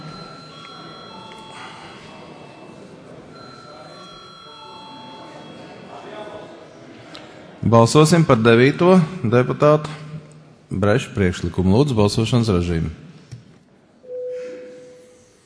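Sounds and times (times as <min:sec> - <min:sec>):
parliament chamber voting bell ringing: 0:00.0 - 0:02.7, 0:03.3 - 0:05.8
soft murmur of voices: 0:00.0 - 0:13.3
speech: 0:07.6 - 0:10.0, 0:10.7 - 0:13.1.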